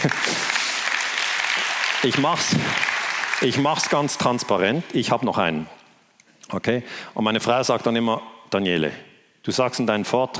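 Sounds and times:
audience clapping: 0.0s - 4.5s
speech: 1.6s - 5.8s, 6.5s - 10.3s.

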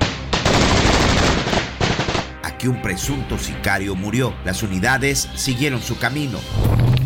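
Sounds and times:
machine-gun fire from an ambush on agents' vehicles: 0.0s - 2.3s
speech: 2.6s - 6.9s.

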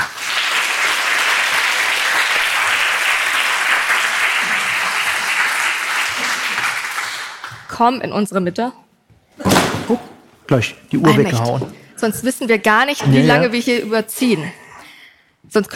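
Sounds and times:
large audience applause: 0.0s - 7.7s
speech: 7.8s - 8.8s, 9.9s - 14.6s, 15.5s - 15.7s.

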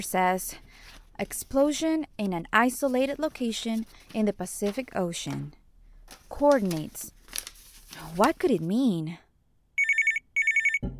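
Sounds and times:
speech: 0.0s - 7.2s, 7.9s - 9.2s
telephone ringing: 9.8s - 10.9s.

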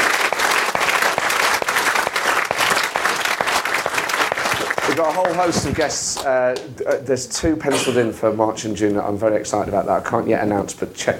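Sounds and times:
theatre audience applause: 0.0s - 6.7s
speech: 5.0s - 11.1s.

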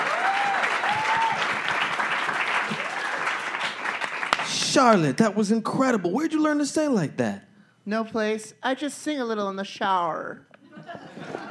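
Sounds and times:
crowd applauding: 0.0s - 5.0s
speech: 4.7s - 10.5s
laughter: 10.6s - 11.5s.

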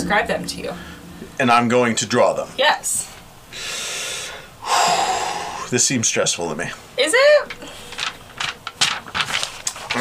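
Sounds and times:
speech: 0.1s - 3.8s, 5.7s - 7.8s
pages turning: 7.6s - 9.9s.

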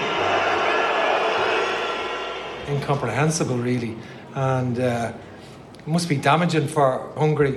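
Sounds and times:
Hungarian football crowd booing: 0.0s - 3.1s
speech: 2.7s - 7.5s.

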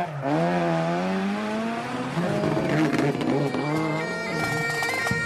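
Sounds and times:
rally cars racing on a stage: 0.0s - 5.1s.

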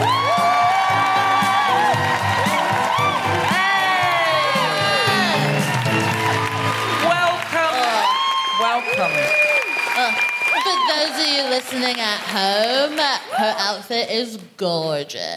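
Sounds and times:
live comedy audience in Glasgow cheering and whooping: 0.0s - 11.8s
audience clapping: 0.0s - 13.8s
speech: 11.7s - 15.3s.

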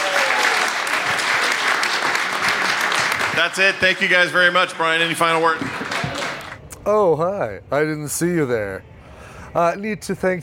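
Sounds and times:
audience applause: 0.0s - 4.6s, 5.2s - 6.6s
speech: 3.4s - 5.8s, 6.9s - 8.9s, 9.5s - 10.4s.

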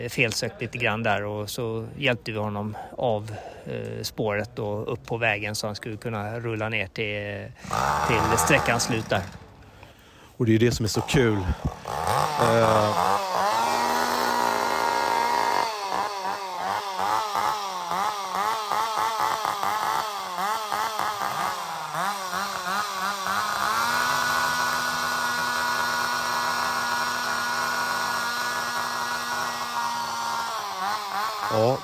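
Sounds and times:
speech: 0.0s - 9.4s, 10.4s - 13.6s
chainsaw revving: 7.5s - 10.2s, 10.8s - 31.8s.

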